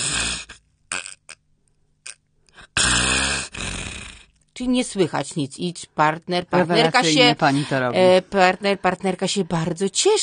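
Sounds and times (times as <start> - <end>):
person imitating snoring with nose pinched: 0.0 - 1.4, 2.1 - 4.3
speech: 4.6 - 10.2.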